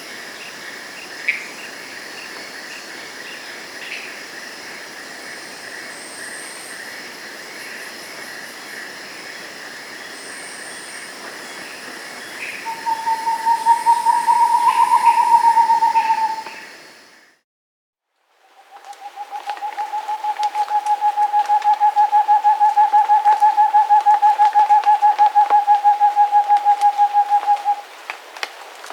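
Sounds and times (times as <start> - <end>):
Rufescent screech owl song in the Andes: 12.5 - 16.7, 18.9 - 27.8.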